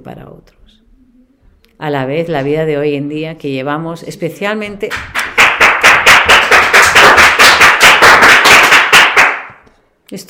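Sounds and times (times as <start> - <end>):
speech: 0.0 - 0.8, 1.8 - 5.2
teenagers clapping wildly entering an office: 4.9 - 9.7.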